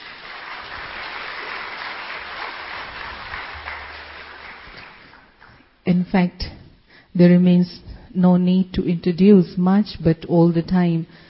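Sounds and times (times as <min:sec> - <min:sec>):
audience applause: 0:00.0 - 0:05.7
speech: 0:05.9 - 0:11.2.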